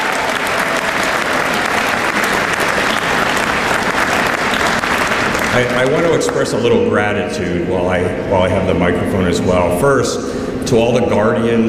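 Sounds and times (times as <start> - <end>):
crowd clapping: 0.0 - 6.8
speech: 5.6 - 11.6.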